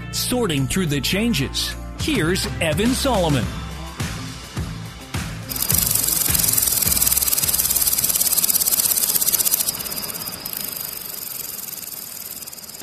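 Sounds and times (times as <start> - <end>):
speech: 0.1 - 3.6
low rhythmic thumping: 2.8 - 10.7
grasshoppers chirping: 5.5 - 12.8
thin sustained whine: 5.5 - 12.8.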